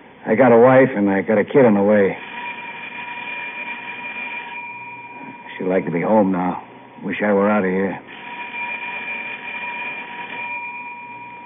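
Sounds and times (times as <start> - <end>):
speech: 0.2 - 2.2, 5.7 - 8.1
elevator emergency bell ringing: 2.2 - 6.2, 8.2 - 11.4.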